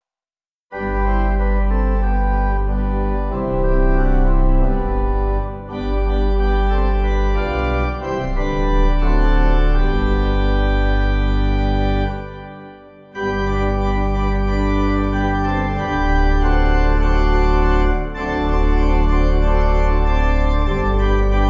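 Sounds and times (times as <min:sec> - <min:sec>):
pipe organ: 0:00.7 - 0:21.4.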